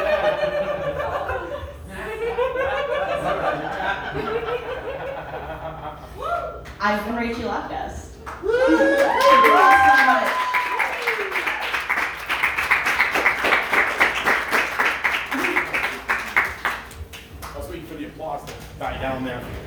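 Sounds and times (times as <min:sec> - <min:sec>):
laughter: 0:00.0 - 0:06.5
speech: 0:06.8 - 0:08.0
audience applause: 0:08.3 - 0:17.2.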